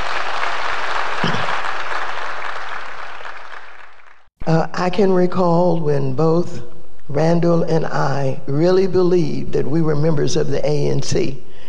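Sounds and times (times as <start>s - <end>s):
audience applause: 0.0s - 4.3s
speech: 4.8s - 11.5s.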